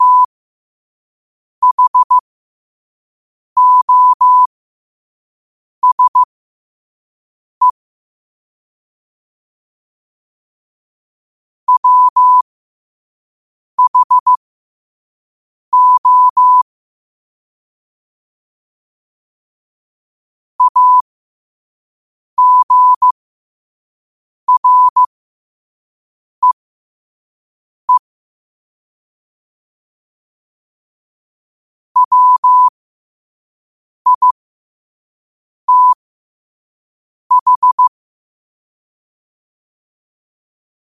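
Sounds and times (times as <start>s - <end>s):
morse code at 5 wpm: 0.0s - 0.3s, 1.6s - 2.2s, 3.6s - 4.5s, 5.8s - 6.3s, 11.7s - 12.4s, 13.8s - 14.4s, 15.8s - 16.6s, 20.6s - 21.0s, 22.4s - 23.2s, 24.5s - 25.1s, 32.0s - 32.7s, 34.1s - 34.3s, 35.7s - 36.0s, 37.3s - 37.9s.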